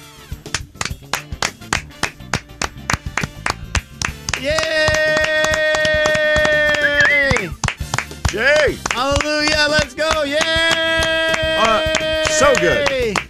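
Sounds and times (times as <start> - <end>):
studio applause for an ovation: 0.4 - 13.2
speech: 4.4 - 4.7, 12.4 - 13.2.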